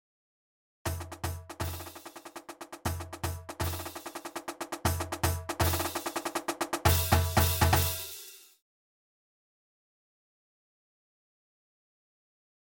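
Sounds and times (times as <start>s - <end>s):
groove music: 0.9s - 8.6s.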